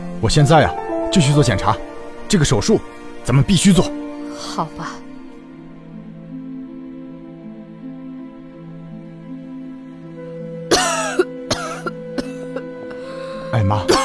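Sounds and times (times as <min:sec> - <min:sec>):
speech: 0:00.2 - 0:05.0
person coughing: 0:10.7 - 0:13.0, 0:13.8 - 0:14.0.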